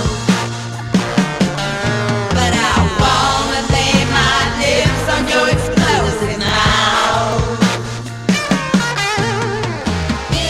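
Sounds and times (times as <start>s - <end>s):
explosion sound made with the mouth: 0.2s - 10.4s.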